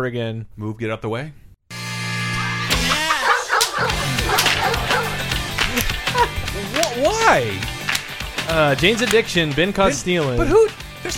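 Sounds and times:
speech: 0.0s - 1.4s, 5.8s - 7.8s, 8.5s - 11.1s
dogs barking in a song intro: 2.3s - 7.9s
laughter: 2.4s - 10.8s.

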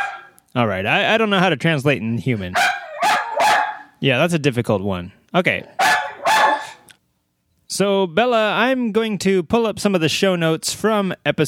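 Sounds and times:
dog barking: 0.0s - 0.4s, 2.5s - 3.9s, 5.6s - 6.8s
speech: 0.5s - 2.7s, 4.0s - 5.8s, 7.7s - 11.4s.

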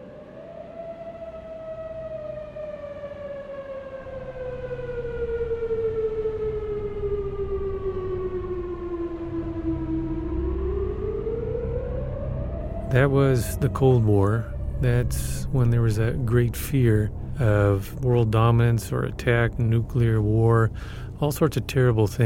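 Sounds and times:
civil defense air raid siren wailing: 0.0s - 22.2s
low rumble: 9.4s - 22.2s
speech: 12.9s - 22.2s.

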